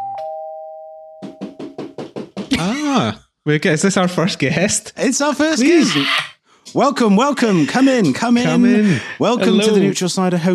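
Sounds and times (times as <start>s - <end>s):
doorbell ringing: 0.0s - 1.6s
laughter: 2.5s - 3.1s, 7.2s - 10.0s
speech: 2.6s - 10.5s.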